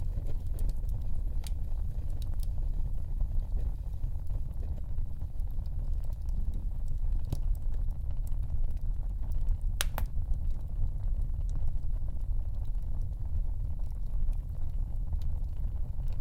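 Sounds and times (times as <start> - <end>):
fire burning in a stove: 0.0 - 16.1.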